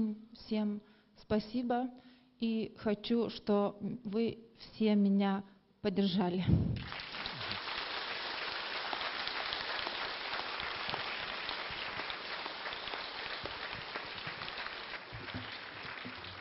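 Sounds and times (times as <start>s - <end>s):
speech: 0.0s - 7.0s
audience applause: 6.8s - 16.4s.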